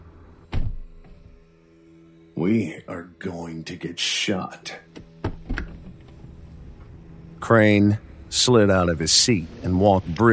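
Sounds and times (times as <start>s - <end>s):
car rear door opening: 0.5s - 1.0s, 5.2s - 6.0s
speech: 2.4s - 5.0s, 7.5s - 10.3s.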